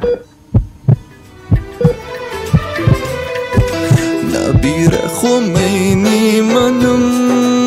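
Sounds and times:
baby's heartbeat on a doctor's monitor: 0:00.0 - 0:05.0
faint tonal hum: 0:00.0 - 0:06.8
speech: 0:04.7 - 0:07.5.

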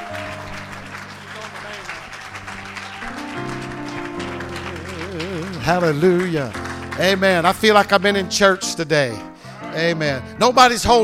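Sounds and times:
audience clapping: 0:00.0 - 0:08.1
sustained organ-like chords: 0:00.0 - 0:11.0
speech: 0:05.6 - 0:11.0.

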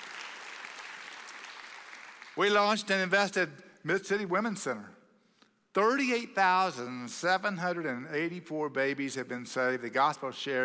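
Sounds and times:
audience applause: 0:00.0 - 0:02.4
speech: 0:02.4 - 0:05.0, 0:05.8 - 0:10.6.

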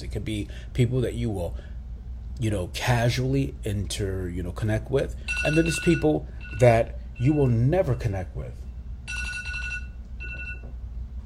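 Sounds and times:
speech: 0:00.0 - 0:01.8, 0:02.4 - 0:08.6
phone alarm chiming: 0:05.2 - 0:07.6, 0:09.1 - 0:10.7.

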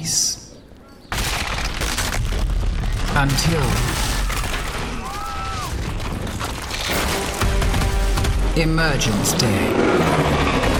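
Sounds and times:
gunfire in Gears of War opening cutscene on Xbox 360: 0:01.1 - 0:08.6
speech: 0:03.2 - 0:04.1, 0:08.6 - 0:10.4.

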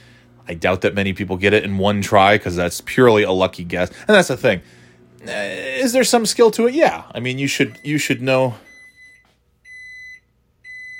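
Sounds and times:
speech: 0:00.5 - 0:08.7
microwave beeping: 0:07.2 - 0:10.9.

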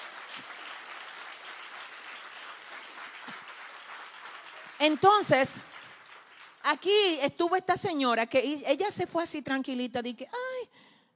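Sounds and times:
audience applause: 0:00.0 - 0:06.7
speech: 0:04.8 - 0:05.7, 0:06.6 - 0:10.7.

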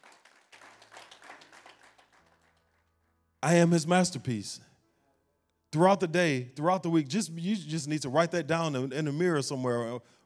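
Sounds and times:
audience clapping: 0:00.0 - 0:02.9
speech: 0:03.4 - 0:04.7, 0:05.7 - 0:10.2.

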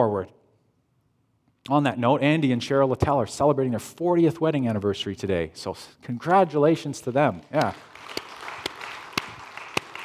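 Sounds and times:
speech: 0:00.0 - 0:00.4, 0:01.6 - 0:07.9
audience applause for anniversary couple: 0:07.6 - 0:10.0.

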